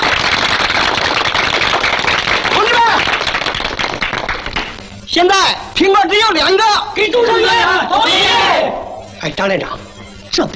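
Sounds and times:
group applause: 0:00.0 - 0:05.0
speech: 0:05.2 - 0:09.8, 0:10.4 - 0:10.5.

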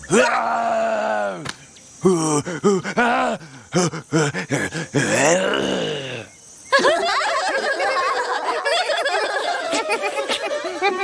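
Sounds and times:
person attempting a roar: 0:00.1 - 0:01.4, 0:02.0 - 0:06.3
busy chattering vocal noise: 0:02.0 - 0:11.0
laughter: 0:06.7 - 0:11.0.

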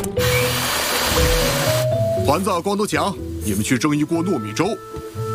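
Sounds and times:
motorized grinder grinding malt into a paste: 0:00.2 - 0:01.9
speech: 0:02.4 - 0:05.2.

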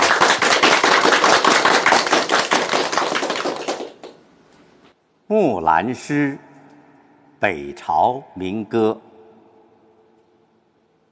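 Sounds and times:
audience applause: 0:00.0 - 0:04.2
speech: 0:05.3 - 0:06.5, 0:07.4 - 0:09.1.

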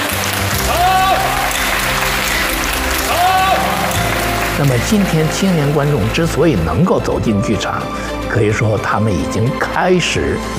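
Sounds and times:
theatre audience applause: 0:00.0 - 0:06.9
speech: 0:04.6 - 0:10.5.

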